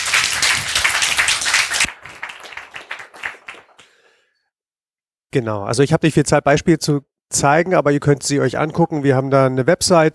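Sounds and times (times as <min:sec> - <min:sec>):
audience applause: 0:00.0 - 0:04.0
speech: 0:05.3 - 0:10.1.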